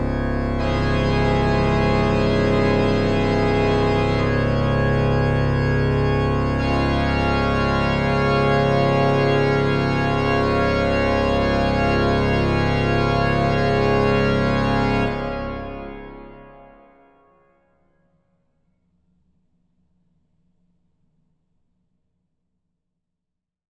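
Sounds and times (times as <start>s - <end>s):
organ toccata: 0.0s - 16.8s.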